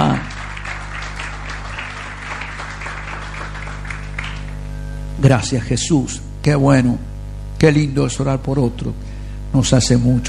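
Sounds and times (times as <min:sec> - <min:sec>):
crowd applauding: 0:00.0 - 0:04.7
low steady hum: 0:00.0 - 0:10.2
speech: 0:05.2 - 0:10.2.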